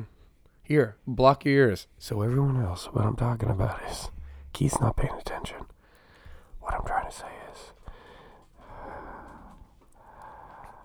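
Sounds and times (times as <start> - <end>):
speech: 0.7 - 5.7, 6.7 - 7.8
quiet heavy breathing into a microphone: 3.9 - 4.6, 5.8 - 6.5, 7.8 - 10.8.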